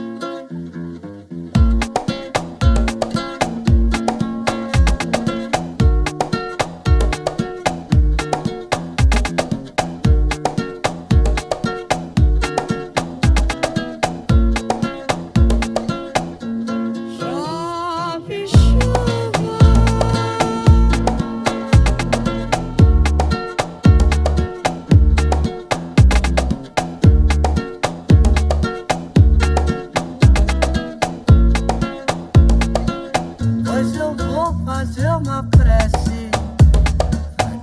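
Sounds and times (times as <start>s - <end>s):
sambass reggaeton music: 1.6s - 16.4s, 17.3s - 37.5s.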